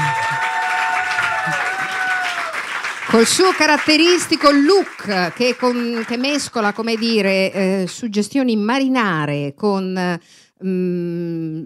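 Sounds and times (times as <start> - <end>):
applause: 0.0 - 8.0
speech: 3.1 - 11.6.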